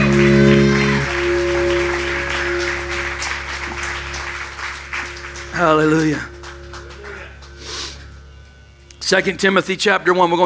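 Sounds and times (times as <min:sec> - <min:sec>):
audience applause: 0:00.0 - 0:07.7
speech: 0:05.6 - 0:06.3, 0:09.1 - 0:10.4.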